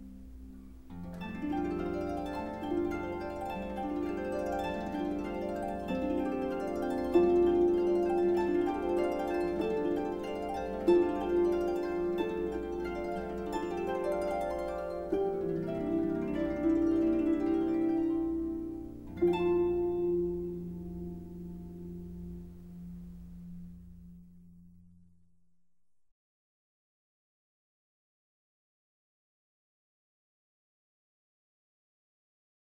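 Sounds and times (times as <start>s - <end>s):
instrumental harp praise music: 0.0s - 25.1s.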